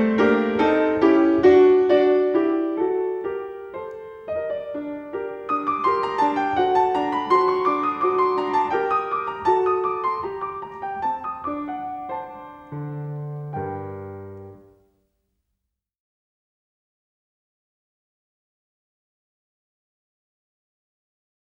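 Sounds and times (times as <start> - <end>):
polonaise in G minor on piano: 0.0 - 15.0.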